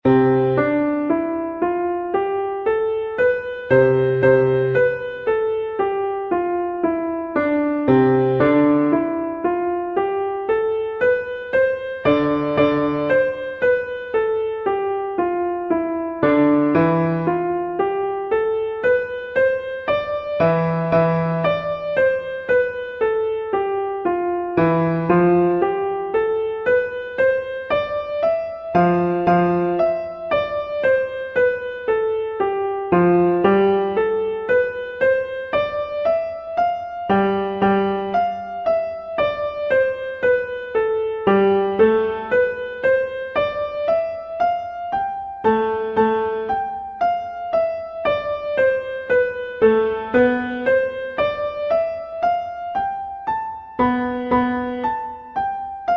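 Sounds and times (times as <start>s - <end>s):
musical scales and modes: 0.0s - 55.9s.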